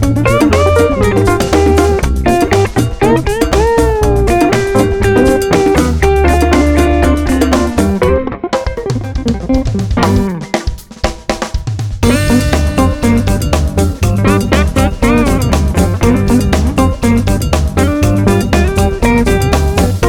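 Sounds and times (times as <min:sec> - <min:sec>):
funky blues rock instrumental: 0:00.0 - 0:20.0.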